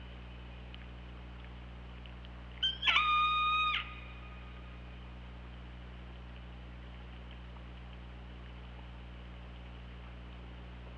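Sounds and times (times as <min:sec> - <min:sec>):
steady low underwater hum: 0:00.0 - 0:10.9
killer whale call: 0:02.6 - 0:04.5.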